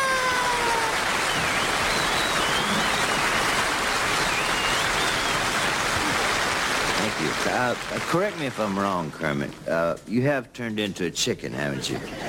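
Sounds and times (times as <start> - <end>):
audience applause: 0.0 - 9.4
high whistles: 0.8 - 5.9
speech: 7.6 - 12.2.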